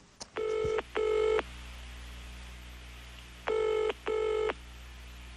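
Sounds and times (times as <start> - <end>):
telephone ringing with steady buzzy tones: 0.4 - 1.4, 3.5 - 4.6.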